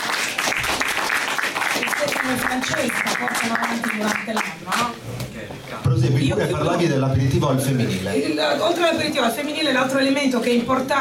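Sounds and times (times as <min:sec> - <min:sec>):
audience applause for a festival's artistic director: 0:00.0 - 0:04.9
speech: 0:02.3 - 0:10.9.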